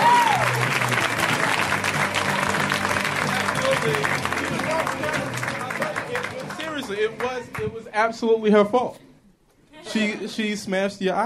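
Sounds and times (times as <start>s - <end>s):
audience applause: 0.0s - 7.8s
speech: 7.6s - 9.1s, 10.0s - 11.2s.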